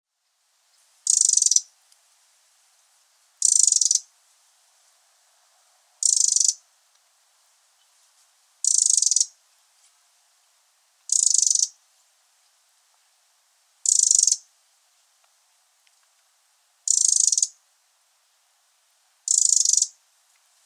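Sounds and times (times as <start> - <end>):
Eurasian wren rattle call: 1.0 - 1.7, 3.4 - 4.1, 6.0 - 6.6, 8.6 - 9.4, 11.1 - 11.8, 13.8 - 14.5, 16.8 - 17.6, 19.2 - 20.0.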